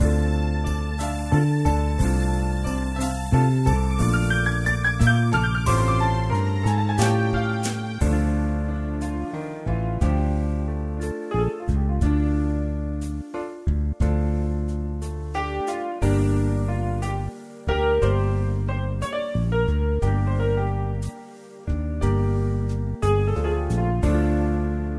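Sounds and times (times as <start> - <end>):
blues music: 0.0 - 24.9.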